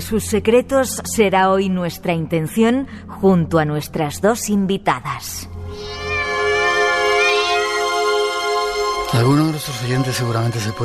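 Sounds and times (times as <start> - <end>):
speech: 0.0 - 6.0, 9.1 - 10.8
cat long drawn-out meow: 5.6 - 8.3.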